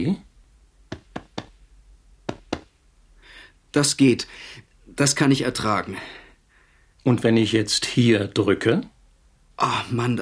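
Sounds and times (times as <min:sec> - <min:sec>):
speech: 0:00.0 - 0:00.3, 0:03.7 - 0:06.2, 0:07.0 - 0:08.9, 0:09.6 - 0:10.2
faint rustling hiss: 0:00.0 - 0:10.2
doctor tapping patient's flank during examination: 0:00.9 - 0:01.6, 0:02.3 - 0:02.7.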